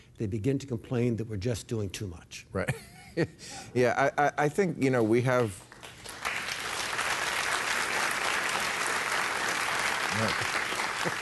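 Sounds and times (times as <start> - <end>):
speech: 0.2 - 6.0, 10.2 - 11.2
audience applause: 5.4 - 11.2.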